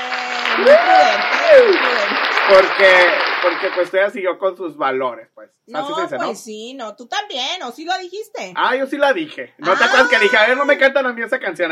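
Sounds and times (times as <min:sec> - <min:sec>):
applause: 0:00.0 - 0:04.0
speech: 0:00.6 - 0:11.7
laughter: 0:09.6 - 0:10.9.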